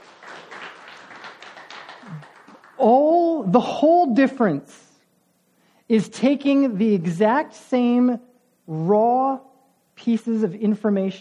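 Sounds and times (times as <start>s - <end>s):
audience applause: 0.0s - 2.8s
speech: 2.1s - 4.9s, 5.9s - 11.2s.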